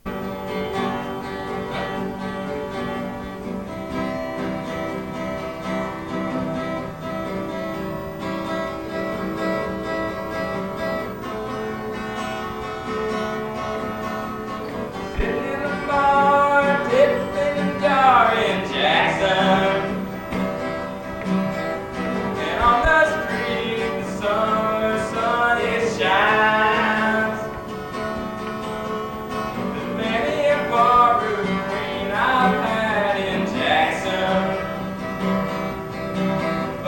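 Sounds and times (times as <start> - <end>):
country music: 0.0 - 36.8.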